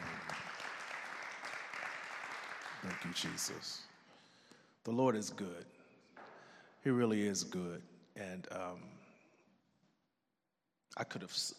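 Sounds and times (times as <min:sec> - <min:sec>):
audience clapping: 0:00.0 - 0:04.0
speech: 0:02.8 - 0:03.9, 0:04.8 - 0:05.8, 0:06.8 - 0:09.0, 0:11.0 - 0:11.5.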